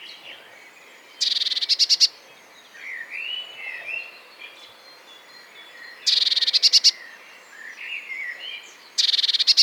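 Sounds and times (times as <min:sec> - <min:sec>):
Eurasian blue tit singing: 0:00.0 - 0:09.6.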